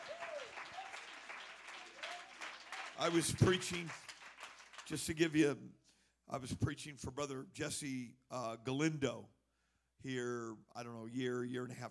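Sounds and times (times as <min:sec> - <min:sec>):
voices shouting and cheering: 0:00.0 - 0:01.2, 0:01.9 - 0:03.9
audience clapping hands: 0:00.0 - 0:05.4
speech: 0:03.0 - 0:04.1, 0:04.9 - 0:09.4, 0:10.0 - 0:11.8.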